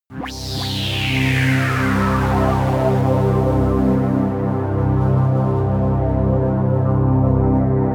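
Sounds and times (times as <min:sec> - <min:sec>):
synth pad sweep hiss: 0:00.1 - 0:07.8.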